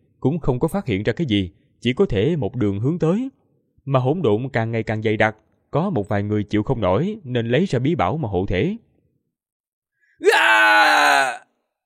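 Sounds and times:
speech: 0.2 - 8.9
person screaming in agony while being attacked and killed: 10.2 - 11.5.

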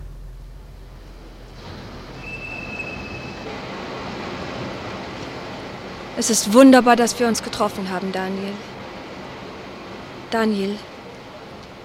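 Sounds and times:
train at a station rumbling and roaring: 0.0 - 11.8
high metallic squeal of wheels or brakes: 1.6 - 3.6
speech: 6.2 - 8.7, 10.3 - 10.9.

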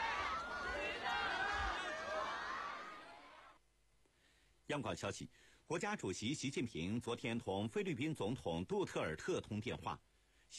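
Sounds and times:
teachers and students applauding and cheering: 0.0 - 3.0
speech: 4.7 - 10.5.

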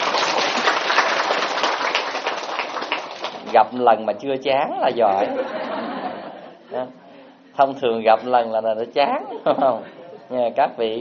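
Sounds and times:
crowd at Linh Sơn applauding: 0.0 - 3.6
speech: 3.5 - 5.9, 6.7 - 7.0, 7.6 - 10.9
laughter: 4.6 - 6.9, 9.1 - 10.3.

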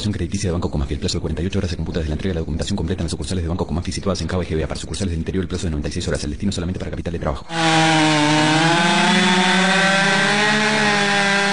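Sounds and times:
speech: 0.0 - 9.5
Stihl chainsaw engine running at high revs and cutting wood: 7.5 - 11.5.

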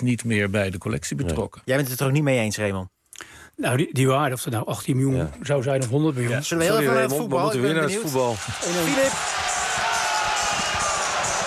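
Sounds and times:
speech: 0.0 - 3.0, 3.6 - 9.6
stadium crowd cheering an FC Utrecht equalising goal: 7.8 - 11.4.

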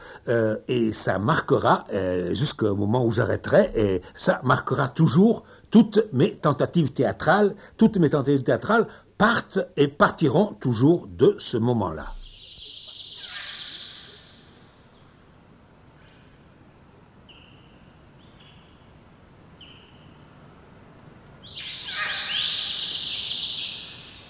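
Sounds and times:
speech: 0.2 - 12.2
birds calling and singing: 12.1 - 20.6, 21.3 - 24.2.

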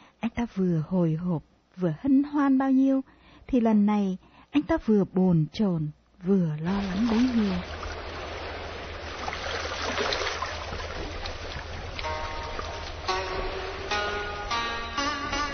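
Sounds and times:
speech: 0.4 - 7.8
sampan oars creaking: 6.7 - 15.5.

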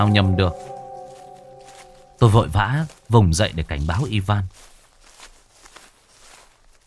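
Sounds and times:
speech: 0.0 - 0.8, 2.2 - 4.7
human footsteps outside: 0.0 - 3.1, 4.5 - 6.8.

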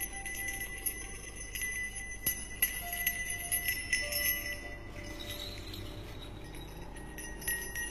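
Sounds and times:
small hand bell being shaken: 0.0 - 7.8.

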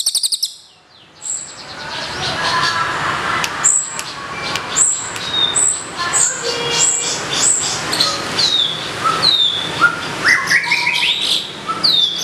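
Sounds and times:
birds singing with mixed whistles and chirps: 0.0 - 2.8, 3.6 - 12.2.

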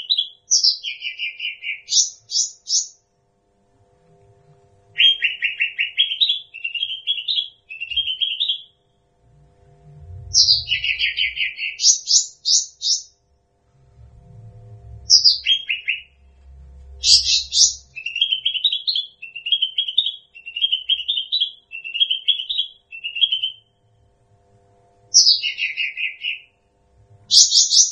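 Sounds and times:
bird singing trills: 0.0 - 3.0, 5.0 - 8.8, 10.2 - 13.2, 15.1 - 16.3, 17.0 - 23.7, 25.1 - 26.6, 27.3 - 27.9.

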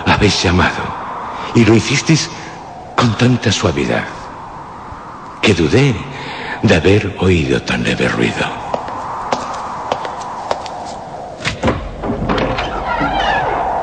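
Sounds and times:
speech: 0.2 - 0.9, 1.5 - 2.4, 3.0 - 4.2, 5.5 - 8.6
door flung wide open: 11.4 - 13.7.

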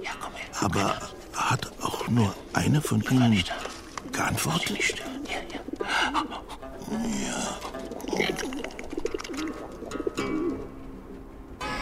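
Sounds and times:
speech: 0.0 - 5.1, 6.9 - 7.6
steady hiss: 0.0 - 11.8
voice imitating pigeon cooing: 4.0 - 10.7.

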